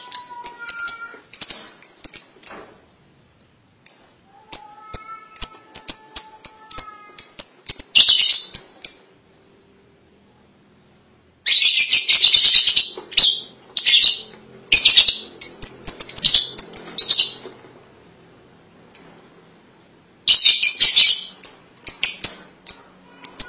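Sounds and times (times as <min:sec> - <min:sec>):
lovebird chirping calls: 0:00.0 - 0:02.8, 0:03.8 - 0:09.2, 0:11.4 - 0:17.5, 0:18.9 - 0:19.2, 0:20.2 - 0:23.4.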